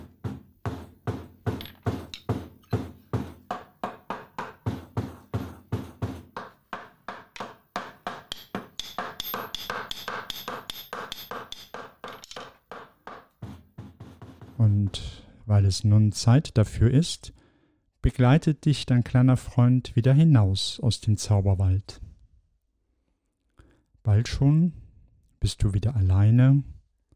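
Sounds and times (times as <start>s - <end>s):
hammering on nails: 0.0s - 15.1s
brighter ringing taps: 6.4s - 12.9s
speech: 14.6s - 17.4s, 18.0s - 22.0s, 24.2s - 24.8s, 25.4s - 26.7s.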